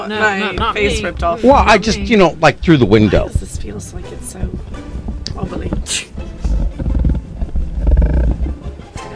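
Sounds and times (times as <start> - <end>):
speech: 0.0 - 6.3
polar bear growling: 6.4 - 8.8.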